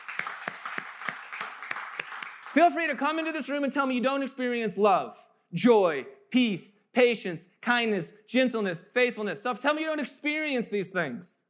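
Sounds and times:
audience clapping: 0:00.0 - 0:03.2
speech: 0:02.6 - 0:11.4.

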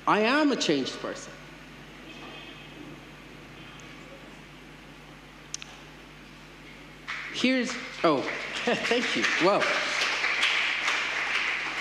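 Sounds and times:
speech: 0:00.1 - 0:01.4, 0:07.4 - 0:09.9
audience applause: 0:07.1 - 0:11.7.

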